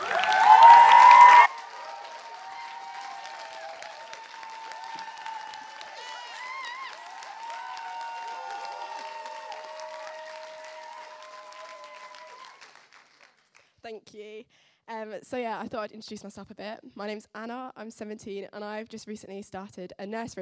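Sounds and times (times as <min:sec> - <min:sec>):
audience clapping welcoming a speaker onstage: 0:00.0 - 0:13.8
speech: 0:14.0 - 0:20.4.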